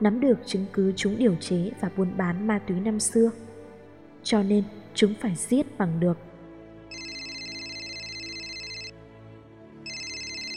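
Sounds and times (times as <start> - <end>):
speech: 0.0 - 3.5, 4.2 - 6.3
mobile phone ringing: 6.9 - 9.0, 9.8 - 10.5.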